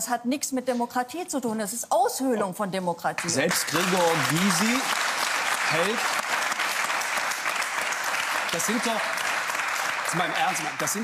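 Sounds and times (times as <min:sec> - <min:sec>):
speech: 0:00.0 - 0:05.1, 0:05.7 - 0:06.2, 0:08.5 - 0:09.2, 0:10.1 - 0:11.0
audience applause: 0:03.2 - 0:11.0.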